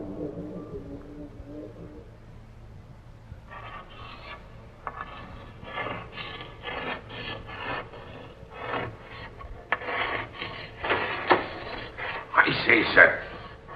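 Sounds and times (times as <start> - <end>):
writing on a slate: 3.5 - 13.7.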